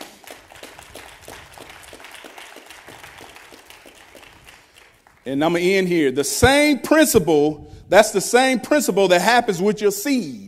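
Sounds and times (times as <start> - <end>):
audience hand clapping: 0.0 - 5.3
speech: 5.2 - 10.4.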